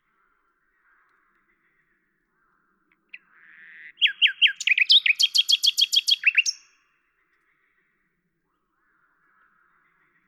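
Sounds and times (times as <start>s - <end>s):
common nightingale singing at Lavours in France: 3.1s - 6.8s.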